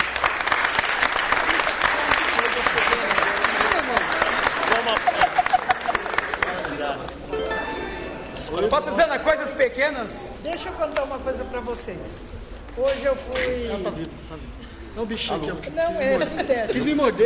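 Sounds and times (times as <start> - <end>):
audience applause: 0.0 - 7.6
laughter: 2.4 - 6.8, 16.0 - 17.2
speech: 8.7 - 17.2.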